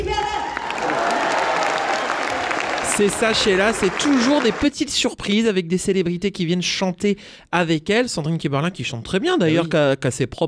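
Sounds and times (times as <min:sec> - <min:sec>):
audience ovation for a guest singer at the Grand Rex: 0:00.6 - 0:04.8
speech: 0:03.0 - 0:10.4.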